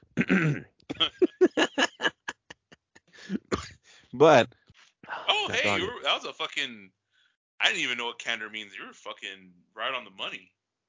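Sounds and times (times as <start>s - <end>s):
hacking cough from bronchitis: 0.1s - 2.1s, 3.2s - 3.8s
speech: 0.3s - 0.7s, 4.2s - 4.6s, 5.7s - 7.0s, 7.6s - 10.6s
laughter: 0.9s - 3.4s, 5.4s - 6.0s.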